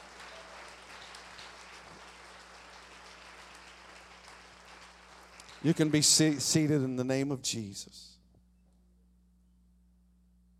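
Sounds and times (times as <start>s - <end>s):
audience clapping hands: 0.0s - 7.1s
speech: 5.6s - 8.2s.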